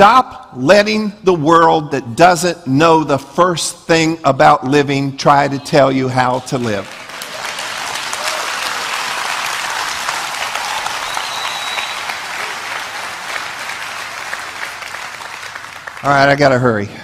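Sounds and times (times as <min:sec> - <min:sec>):
speech: 0:00.0 - 0:07.0, 0:16.0 - 0:17.0
crowd applauding: 0:06.3 - 0:16.6.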